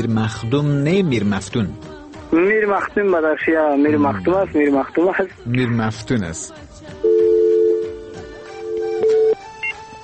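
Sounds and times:
speech: 0.0 - 7.1
phone call disconnecting dial tone: 7.0 - 9.8.

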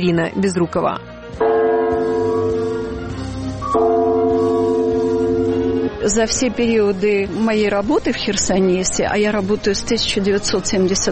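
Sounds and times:
speech: 0.0 - 1.5, 6.0 - 11.0
church bell striking at the Chersonesus Taurica reserve: 1.4 - 6.0.

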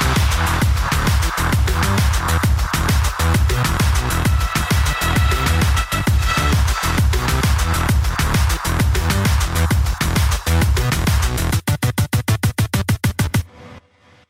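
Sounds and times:
rhythmic music: 0.0 - 13.9.

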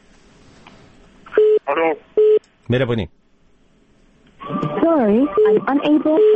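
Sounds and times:
telephone tone after a listener's call drops during a radio phone-in: 1.4 - 1.6, 4.5 - 6.3
speech: 1.8 - 2.1, 2.7 - 3.2, 4.5 - 6.3.

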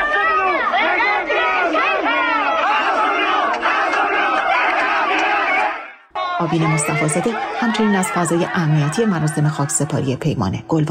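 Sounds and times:
crowd chanting slogans at a funeral: 0.0 - 10.0
speech: 6.4 - 10.8.

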